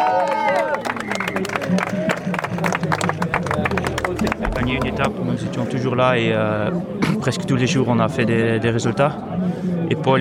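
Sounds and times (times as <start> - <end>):
high cheer or whistle: 0.0 - 2.2
crowd applause: 0.0 - 5.5
hubbub of voices: 0.0 - 10.1
speech: 4.7 - 10.1.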